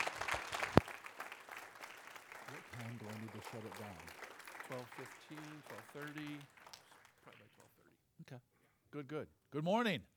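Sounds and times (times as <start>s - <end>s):
church congregation applauding to welcome a guest minister: 0.0s - 7.9s
speech: 3.4s - 6.6s, 8.3s - 10.1s.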